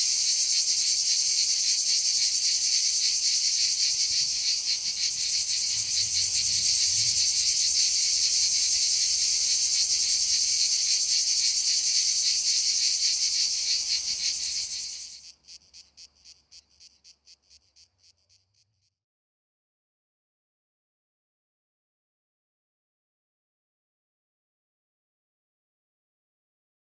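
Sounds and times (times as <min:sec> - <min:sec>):
cicada buzzing song: 0:00.0 - 0:18.9.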